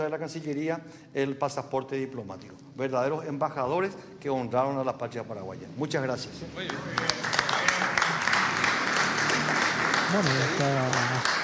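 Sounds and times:
speech: 0.0 - 7.5, 10.1 - 11.4
audience applause: 6.6 - 11.4.

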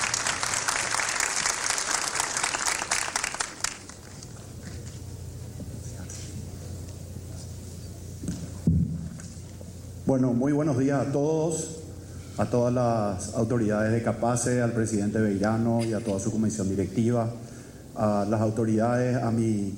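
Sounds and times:
audience applause: 0.0 - 4.4
speech: 10.1 - 11.8, 12.4 - 19.7.

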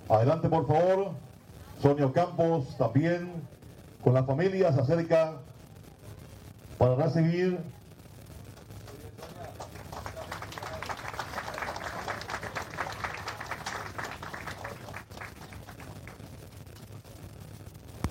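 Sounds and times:
speech: 0.1 - 5.5, 6.8 - 7.8
audience applause at a ceremony: 8.6 - 16.4.

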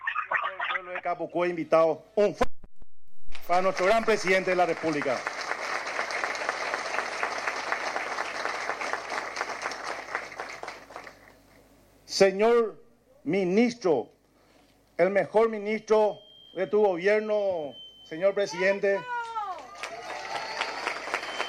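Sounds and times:
speech: 0.8 - 2.5, 3.5 - 5.4, 12.2 - 14.2, 15.0 - 19.1
loud audience applause: 3.6 - 11.4, 19.2 - 21.4.

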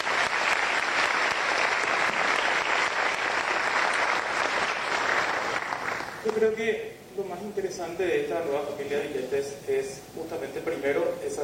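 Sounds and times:
applause: 0.0 - 6.4
speech: 6.3 - 11.4.

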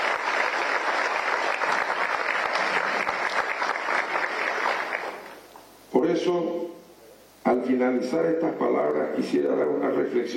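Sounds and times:
audience applause: 0.0 - 5.4
speech: 6.3 - 6.6, 7.7 - 10.3.

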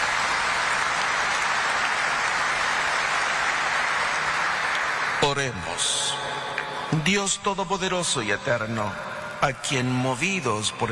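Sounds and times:
warm applause for guests: 0.0 - 7.0
speech: 5.3 - 10.9.

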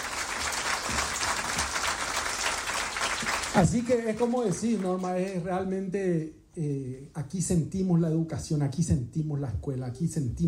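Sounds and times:
audience applause: 0.0 - 5.4
speech: 3.6 - 10.4.

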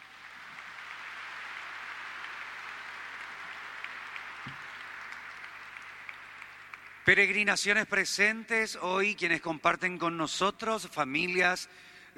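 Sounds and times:
crowd applauding: 0.0 - 7.7
speech: 7.1 - 12.1.

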